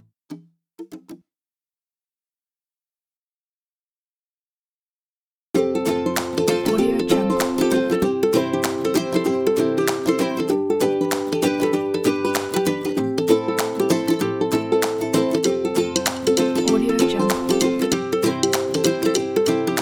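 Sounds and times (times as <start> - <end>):
funny acoustic music: 0.0 - 1.2, 5.6 - 19.7.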